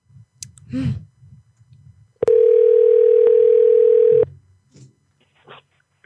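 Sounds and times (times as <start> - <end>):
telephone ringback tone while a call is returned: 2.2 - 4.3.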